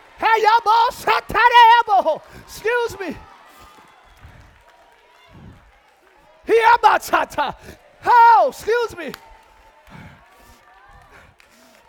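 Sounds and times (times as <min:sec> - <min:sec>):
audience clapping: 0:00.0 - 0:11.8
speech: 0:00.4 - 0:03.3, 0:06.5 - 0:09.3.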